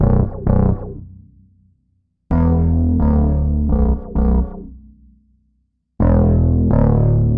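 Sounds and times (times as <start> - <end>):
phat bass: 0.0 - 1.3, 2.3 - 4.9, 6.0 - 7.3.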